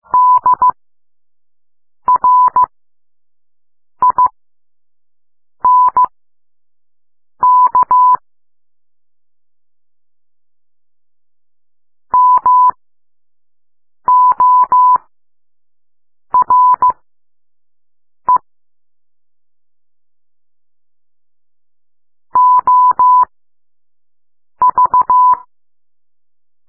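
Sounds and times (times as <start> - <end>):
morse code beeps: 0.1 - 0.8, 2.1 - 2.7, 4.0 - 4.3, 5.6 - 6.1, 7.4 - 8.2, 12.2 - 12.8, 14.1 - 15.1, 16.3 - 17.0, 22.4 - 23.3, 24.6 - 25.5.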